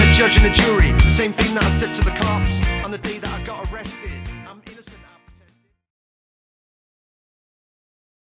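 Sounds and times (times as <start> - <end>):
rock pop band playing: 0.0 - 5.4.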